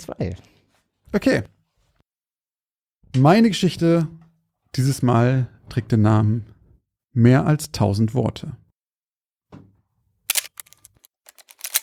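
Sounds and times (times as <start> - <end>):
speech: 0.0 - 1.6, 3.1 - 6.5, 7.2 - 8.6
film advance lever being wound: 10.3 - 11.8
mechanical camera shutter clicking: 10.3 - 11.8.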